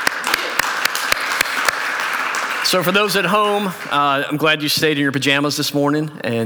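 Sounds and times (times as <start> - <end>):
small group clapping: 0.0 - 4.9
laughter: 0.0 - 6.4
speech: 2.7 - 6.4.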